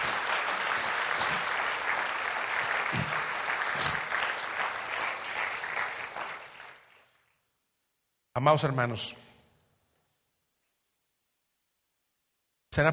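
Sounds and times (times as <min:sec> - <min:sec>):
audience applause: 0:00.0 - 0:07.4
speech: 0:08.4 - 0:09.2, 0:12.8 - 0:12.9.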